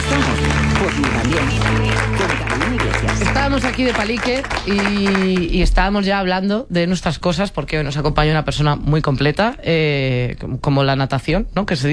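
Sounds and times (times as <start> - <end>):
audience clapping for a guest on a Spanish talk show: 0.0 - 6.0
speech: 1.0 - 2.4, 3.4 - 11.9.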